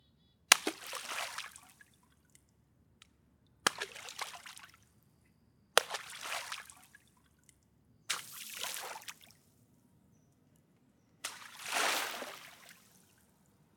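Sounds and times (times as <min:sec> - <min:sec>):
water splashes with spray and wave: 0:00.5 - 0:01.8, 0:03.7 - 0:04.6, 0:05.8 - 0:06.9, 0:11.3 - 0:13.0
big hand slaps on water: 0:00.5 - 0:02.4, 0:03.0 - 0:04.8, 0:05.8 - 0:09.3, 0:11.2 - 0:13.0.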